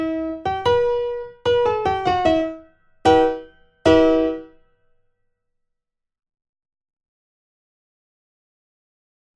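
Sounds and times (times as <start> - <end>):
primo part of a four-hand practice piece playback: 0.0 - 4.6.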